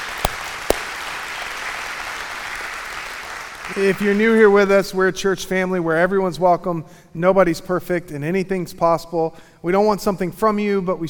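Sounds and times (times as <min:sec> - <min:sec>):
sharp claps: 0:00.0 - 0:02.8
church congregation applauding at a Christmas service: 0:00.0 - 0:04.2
speech: 0:03.7 - 0:11.0.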